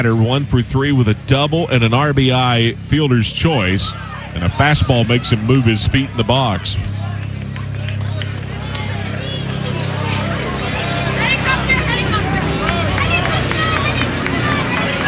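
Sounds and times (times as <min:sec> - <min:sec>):
speech: 0:00.0 - 0:06.9
crowd babble: 0:00.0 - 0:15.0
excited children chattering and calling out: 0:00.0 - 0:15.0
helicopter rumble: 0:00.0 - 0:15.0
laughter: 0:00.0 - 0:15.0.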